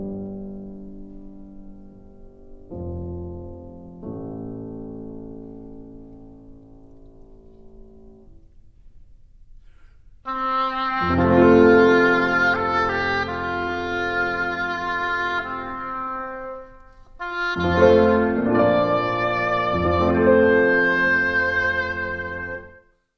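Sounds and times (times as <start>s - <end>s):
flute and oboe playing a caprice: 10.3s - 22.9s.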